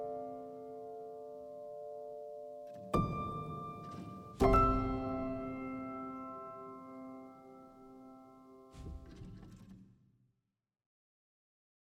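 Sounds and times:
exploration piano music: 0:00.0 - 0:08.8.

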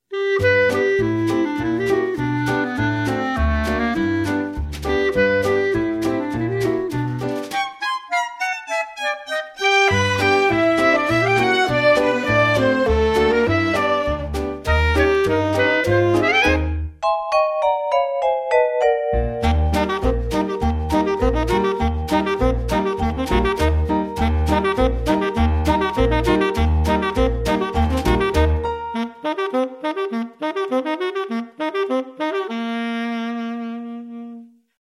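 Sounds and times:
instrumental music: 0:00.0 - 0:34.8.

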